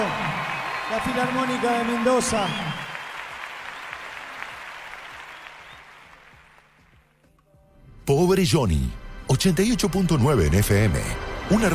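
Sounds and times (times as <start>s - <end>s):
audience applause: 0.0s - 7.1s
speech: 0.9s - 2.8s, 8.1s - 11.7s.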